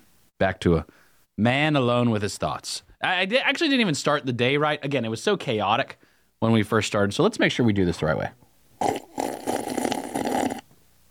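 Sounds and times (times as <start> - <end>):
speech: 0.4 - 9.0
person slurping coffee: 8.8 - 10.8.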